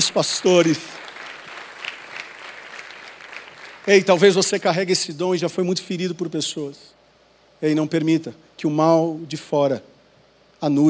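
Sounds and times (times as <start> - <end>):
audience applauding: 0.0 - 4.2
speech: 0.1 - 1.0, 3.9 - 7.0, 7.6 - 9.9, 10.6 - 10.8.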